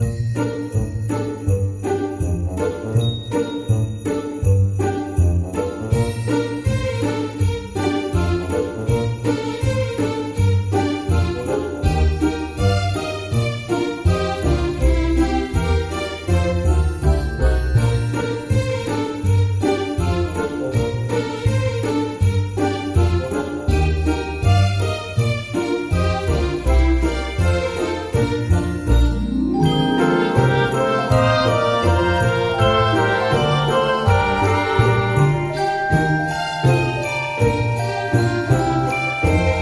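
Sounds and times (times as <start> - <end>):
happy Christmas music loop: 0.0 - 39.6.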